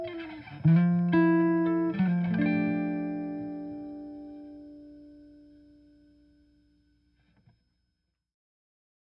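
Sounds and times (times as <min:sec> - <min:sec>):
acoustic archtop guitar of flamed maple and European spruce: 0:00.0 - 0:05.4.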